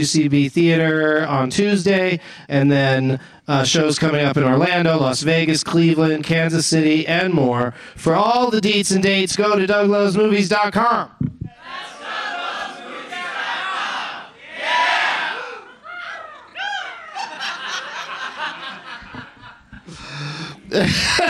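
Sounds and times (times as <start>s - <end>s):
speech: 0.0s - 11.2s, 20.7s - 21.2s
people shouting: 11.5s - 17.4s
audience imitating eagle cries: 11.5s - 18.6s
bursts of laughter: 15.2s - 21.2s.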